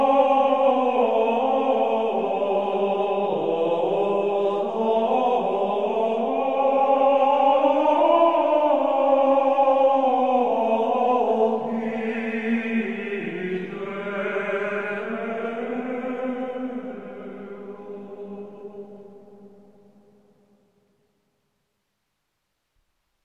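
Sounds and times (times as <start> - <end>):
Ambrosian Gregorian chant singing: 0.0 - 20.1.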